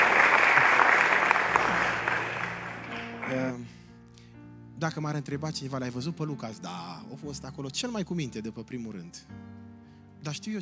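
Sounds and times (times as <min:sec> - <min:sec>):
audience applause: 0:00.0 - 0:03.6
speech: 0:04.8 - 0:09.6, 0:10.2 - 0:10.6.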